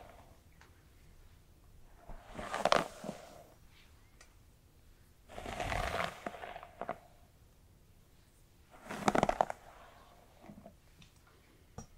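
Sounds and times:
brushing through hair: 2.2s - 3.5s, 5.3s - 7.0s, 8.7s - 10.2s.

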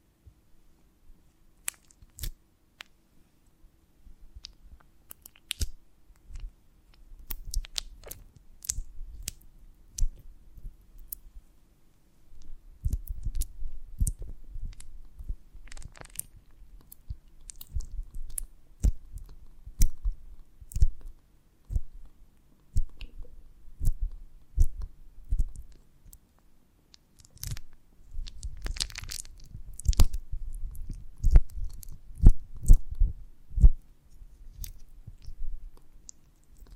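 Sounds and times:
faint low hum: 0.0s - 36.7s
soft waxy squishes: 1.6s - 2.9s, 4.4s - 10.2s, 12.8s - 21.1s, 26.9s - 32.8s
honeycomb on a branch crackling and snapping: 1.6s - 3.0s, 4.3s - 11.3s, 12.3s - 36.7s.

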